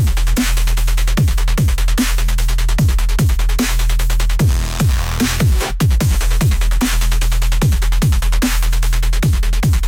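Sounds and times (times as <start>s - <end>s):
crushing bassquake bass music: 0.0s - 9.8s.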